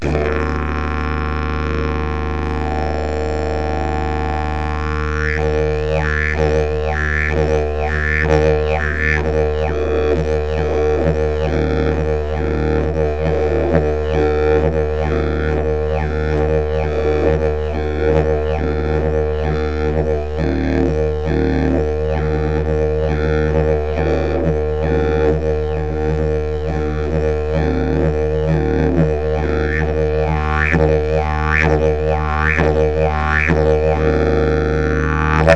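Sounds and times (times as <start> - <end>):
didgeridoo: 0.0 - 35.5.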